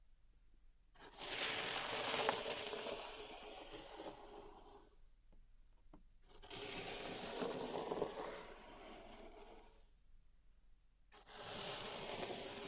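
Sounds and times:
pink salt in a zen garden raked and scraped: 1.0s - 4.6s, 6.5s - 9.8s, 11.2s - 12.6s.

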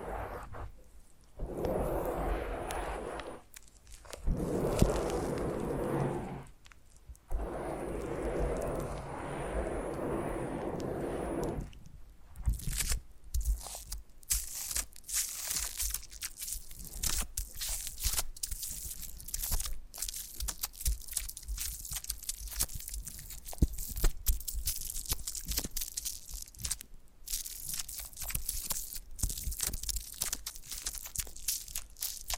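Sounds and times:
foam massage rubbing: 0.0s - 0.8s, 1.4s - 6.6s, 7.3s - 11.8s
crunchy squeaks and scratches from foam: 1.4s - 9.4s, 12.4s - 32.3s.

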